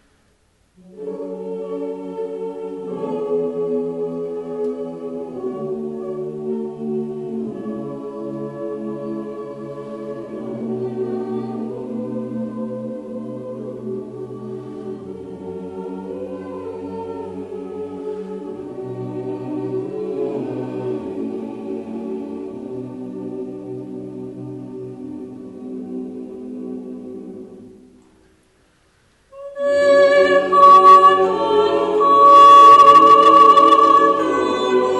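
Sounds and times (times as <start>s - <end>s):
Ukrainian lullaby: 0.8s - 23.2s, 29.4s - 34.9s.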